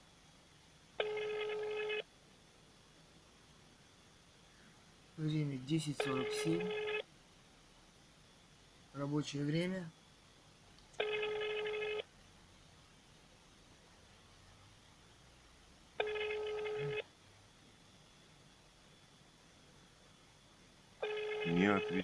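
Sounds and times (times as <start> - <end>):
telephone dialing: 1.0 - 2.0, 11.0 - 12.0, 16.0 - 17.0, 21.0 - 22.0
quiet telephone line hiss: 1.0 - 2.1, 5.2 - 7.1, 11.0 - 12.1, 16.0 - 17.2, 21.0 - 22.0
telephone ringing tone: 1.0 - 2.1, 5.9 - 7.1, 11.0 - 12.1, 16.0 - 17.1, 21.0 - 22.0
speech: 5.2 - 6.9, 9.0 - 10.0.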